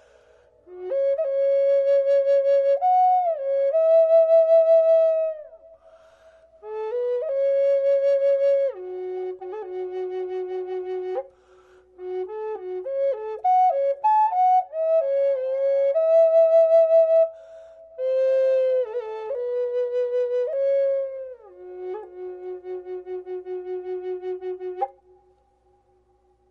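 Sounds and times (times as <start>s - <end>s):
redwood flute in F sharp: 0.0s - 26.4s.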